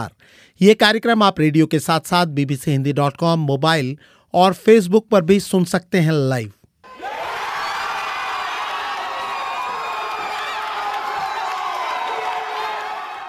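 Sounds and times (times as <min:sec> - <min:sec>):
speech: 0:00.0 - 0:06.6
large crowd of football fans cheering: 0:06.9 - 0:13.2.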